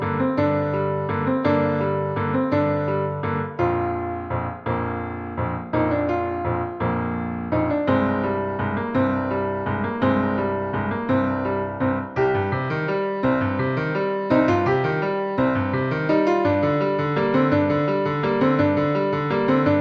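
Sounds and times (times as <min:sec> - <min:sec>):
easy piano music: 0:00.0 - 0:19.7.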